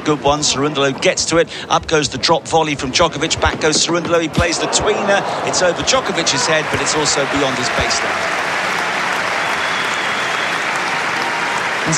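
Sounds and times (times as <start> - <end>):
speech: 0.0 - 8.8
round of applause for a tweener: 5.8 - 11.9.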